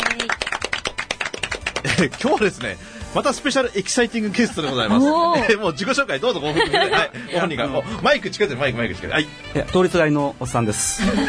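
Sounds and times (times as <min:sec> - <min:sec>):
applause: 0:00.0 - 0:02.8
laughter: 0:01.8 - 0:02.5, 0:04.1 - 0:07.8, 0:10.9 - 0:11.2
speech: 0:01.9 - 0:11.2.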